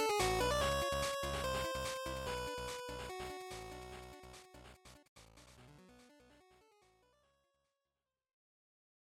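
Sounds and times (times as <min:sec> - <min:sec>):
Game Boy fighting game stage music: 0:00.0 - 0:06.9.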